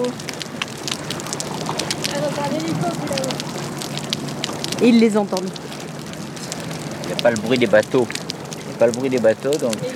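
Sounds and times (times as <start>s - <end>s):
small crackling sounds: 0.0s - 9.9s
speech: 4.8s - 5.7s, 7.2s - 8.2s, 8.8s - 9.9s.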